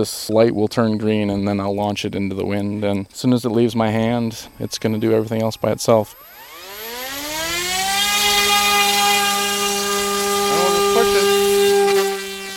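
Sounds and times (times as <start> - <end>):
speech: 0.0 - 6.4
small fixed-wing electric drone motor spinning up: 4.0 - 12.5.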